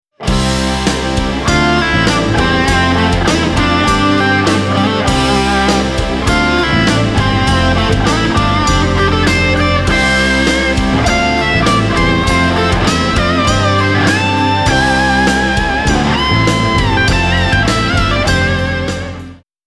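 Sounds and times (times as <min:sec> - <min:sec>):
guitar solo riff: 0:00.2 - 0:19.4.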